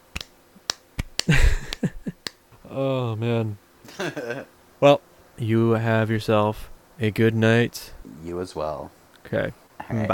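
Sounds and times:
slow hand clapping: 0.1 - 2.4
speech: 2.8 - 10.1.

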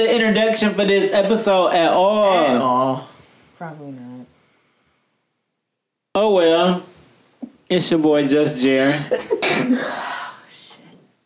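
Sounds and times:
speech: 0.0 - 4.3, 6.2 - 6.9, 7.7 - 10.0
sneeze: 9.4 - 10.1.

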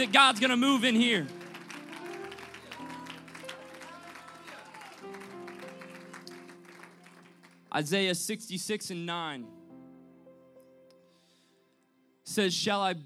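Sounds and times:
speech: 0.0 - 1.4, 7.7 - 9.6, 12.3 - 13.0
audience clapping along in rhythm: 0.0 - 7.7.

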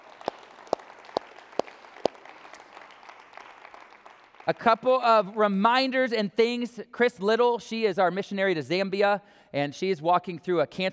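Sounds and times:
audience applause: 0.0 - 5.2
speech: 4.5 - 10.9.

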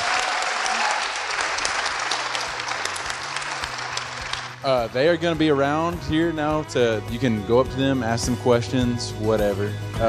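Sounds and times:
audience applause: 0.0 - 4.6
speech: 4.6 - 10.0.

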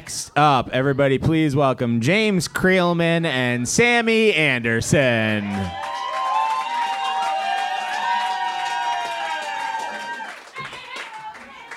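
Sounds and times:
speech: 0.1 - 5.9
crowd clapping and cheering: 5.2 - 11.7.

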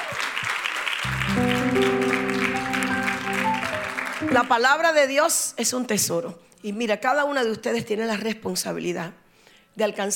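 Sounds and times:
audience clapping: 0.0 - 4.9
sustained keyboard chords: 1.1 - 5.0
speech: 4.3 - 9.2, 9.8 - 10.1.

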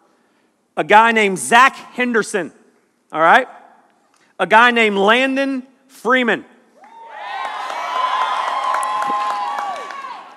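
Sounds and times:
speech: 0.8 - 3.6, 4.4 - 6.5
audience cheering: 6.8 - 10.3.

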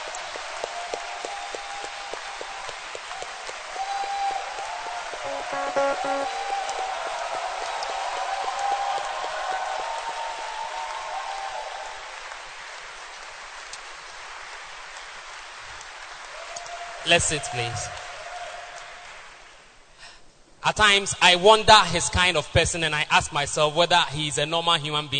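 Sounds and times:
audience clapping: 0.0 - 17.3
speech: 5.5 - 6.5, 17.1 - 18.0, 20.7 - 25.1.

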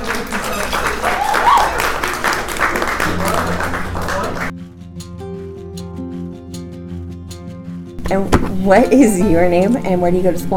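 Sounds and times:
crowd clapping and cheering: 0.0 - 4.5
speech: 8.1 - 10.5.

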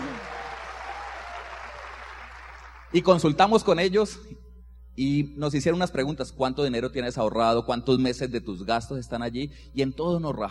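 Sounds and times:
person cheering: 0.0 - 2.0
audience applause: 0.0 - 2.9
speech: 2.9 - 4.4, 5.0 - 10.4.

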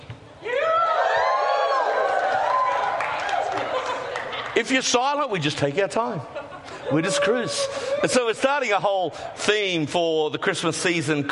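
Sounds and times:
audience cheering: 0.5 - 4.8, 6.9 - 8.3
laughter: 3.0 - 8.4
speech: 4.6 - 11.2.

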